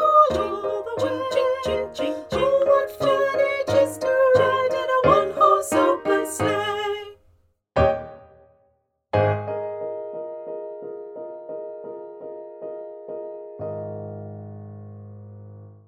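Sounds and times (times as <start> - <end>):
christmas song with vocals: 0.0 - 7.3.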